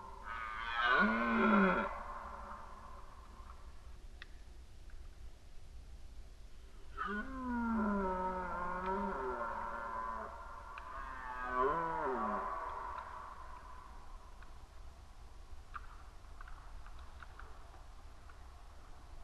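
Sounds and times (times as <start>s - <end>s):
Red deer roaring: 0.3s - 2.7s, 7.0s - 13.6s.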